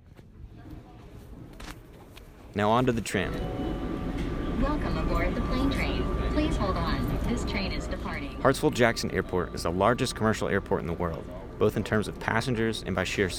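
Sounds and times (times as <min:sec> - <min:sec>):
speech: 0:02.6 - 0:03.6, 0:04.6 - 0:13.3
airport security scanner running: 0:03.1 - 0:12.4.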